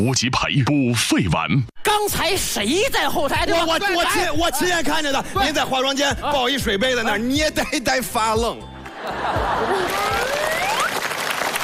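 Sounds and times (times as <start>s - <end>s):
speech: 0.0s - 10.4s
audience applause: 8.9s - 11.6s
faint laughter: 9.0s - 10.8s
whistle-like cheers: 9.9s - 11.1s.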